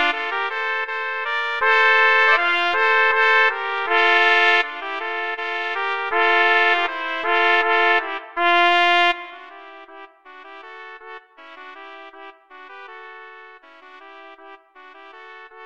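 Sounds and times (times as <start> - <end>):
trumpet trio playing slavonic music: 0.0 - 8.4.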